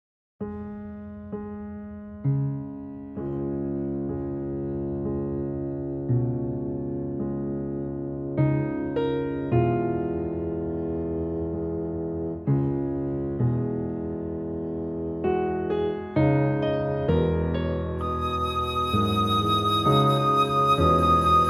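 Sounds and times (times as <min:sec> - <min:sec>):
piano: 0:00.4 - 0:21.4
flute: 0:18.0 - 0:21.4.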